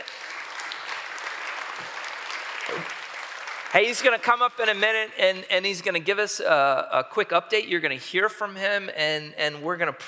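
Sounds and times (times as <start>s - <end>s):
audience clapping: 0.0s - 5.1s
speech: 2.7s - 3.0s, 3.7s - 10.0s.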